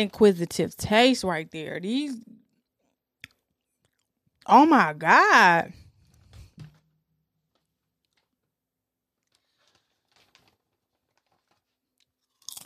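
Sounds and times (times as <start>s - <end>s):
speech: 0.0s - 2.4s, 4.5s - 5.8s
crunchy chewing of a dill pickle: 11.2s - 12.6s.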